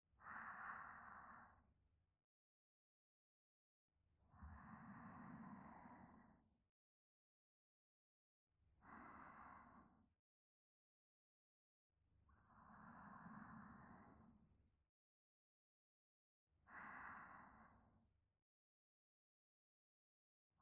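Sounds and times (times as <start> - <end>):
sleep breathing: 0.2 - 1.6, 4.5 - 6.4, 8.8 - 9.9, 12.5 - 14.3, 16.7 - 17.8.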